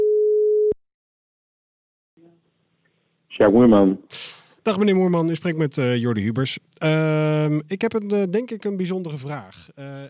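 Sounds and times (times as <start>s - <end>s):
telephone ringing tone on an outgoing call: 0.0s - 0.8s
speech: 3.4s - 10.0s.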